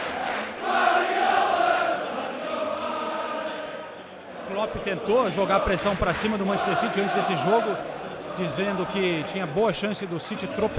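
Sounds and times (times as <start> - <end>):
stadium crowd chanting: 0.0 - 10.7
speech: 4.6 - 10.7.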